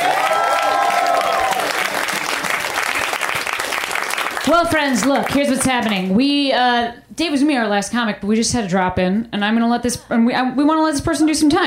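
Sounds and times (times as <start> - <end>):
audience applause for a comic at a stand-up show: 0.0 - 6.0
speech: 4.5 - 11.6.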